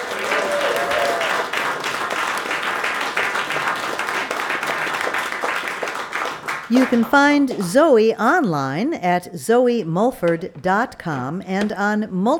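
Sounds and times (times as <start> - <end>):
audience applauding a singer after her song: 0.0 - 7.7
speech: 6.7 - 12.3.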